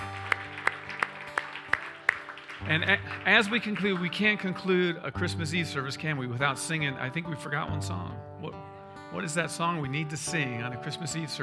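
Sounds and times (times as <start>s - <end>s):
congregation clapping at a Christmas Eve church service: 0.0s - 4.9s
speech: 2.6s - 11.4s.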